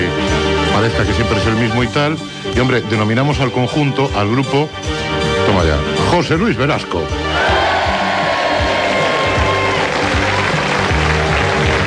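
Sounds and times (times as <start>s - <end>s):
speech: 0.8s - 7.5s
crowd applause: 7.4s - 11.8s.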